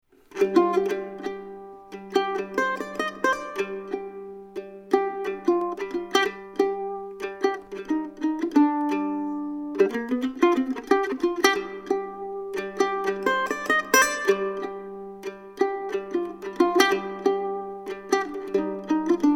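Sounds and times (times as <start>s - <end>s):
mandolin: 0.0s - 19.3s.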